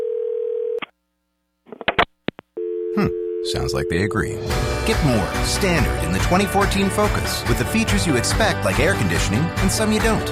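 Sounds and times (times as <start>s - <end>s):
telephone dial tone: 0.0s - 0.8s, 2.6s - 3.5s
speech: 3.0s - 10.3s.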